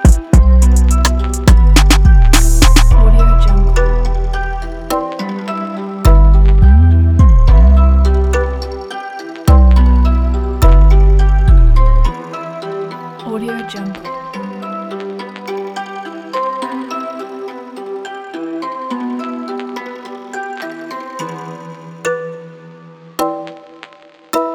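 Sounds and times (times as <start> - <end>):
trap hip hop beat: 0.0 - 12.2.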